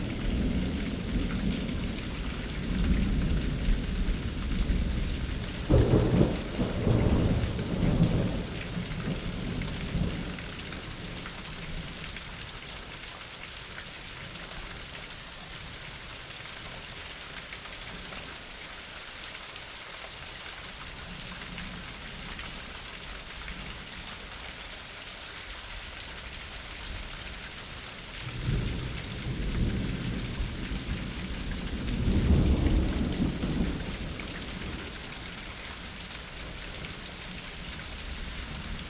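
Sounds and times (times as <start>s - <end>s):
spring thunderstorm in suburbs: 0.0s - 12.0s, 28.3s - 38.8s.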